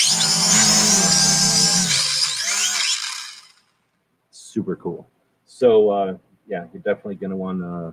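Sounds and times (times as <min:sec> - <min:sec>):
tiny drone propellers whirring: 0:00.0 - 0:03.7
speech: 0:04.6 - 0:07.9.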